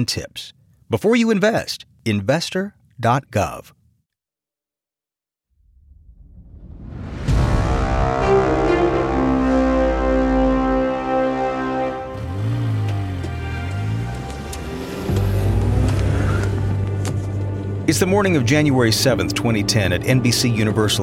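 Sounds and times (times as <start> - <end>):
speech: 0.0 - 3.8, 17.9 - 21.0
car engine droning on the way into work in Hollywood: 7.8 - 21.0.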